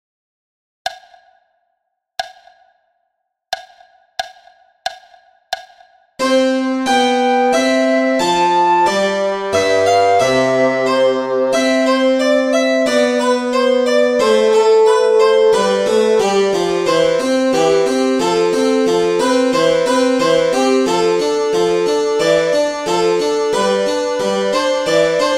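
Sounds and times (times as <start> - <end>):
lively vivace music piece: 6.2 - 25.3.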